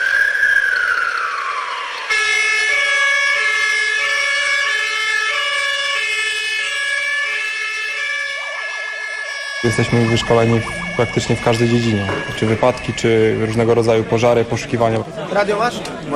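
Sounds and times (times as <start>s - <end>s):
fire brigade alarm siren calling out volunteer firefighters: 0.0s - 15.1s
speech: 9.7s - 16.1s.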